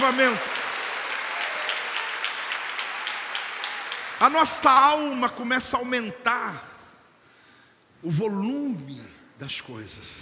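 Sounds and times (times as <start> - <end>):
speech: 0.0 - 0.5, 4.2 - 6.7, 8.0 - 10.2
people clapping hands: 0.0 - 4.5.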